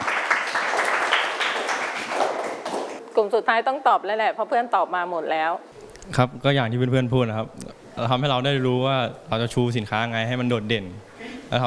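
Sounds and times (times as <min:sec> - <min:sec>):
class applauding: 0:00.0 - 0:03.0
speech: 0:03.2 - 0:11.6.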